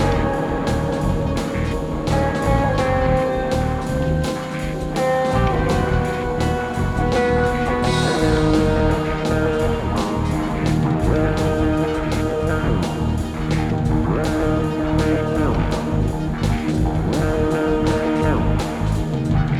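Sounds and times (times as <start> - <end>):
drums: 0.0 - 19.5.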